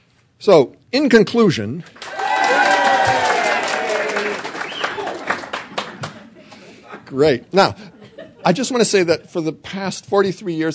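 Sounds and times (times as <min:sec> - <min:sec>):
speech: 0:00.4 - 0:02.0, 0:07.1 - 0:10.7
audience at an orchestra event clapping: 0:01.8 - 0:06.7
audience at an orchestra event cheering: 0:02.0 - 0:06.2
laughter: 0:03.8 - 0:09.4
shrill whistles from an audience at an orchestra event: 0:04.6 - 0:05.1.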